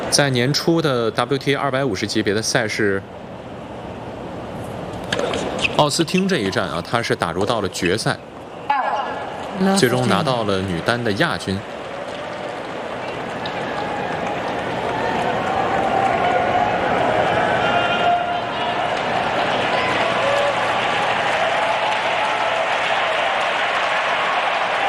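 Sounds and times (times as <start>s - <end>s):
speech: 0.1s - 3.2s, 5.8s - 8.3s, 9.6s - 11.8s
tennis crowd cheering for Townsend: 5.0s - 24.8s.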